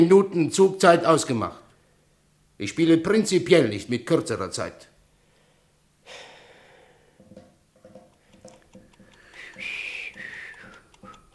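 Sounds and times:
speech: 0:00.0 - 0:01.6, 0:02.6 - 0:04.9
breathing: 0:01.7 - 0:02.2, 0:05.1 - 0:07.3, 0:09.0 - 0:11.2
nervous finger drumming: 0:07.2 - 0:11.3
short wavering whistled tune: 0:09.2 - 0:11.3.

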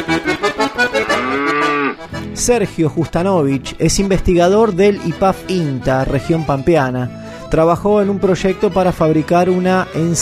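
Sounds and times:
speech: 0:00.0 - 0:00.4, 0:02.4 - 0:10.2
cow mooing: 0:00.8 - 0:02.1.

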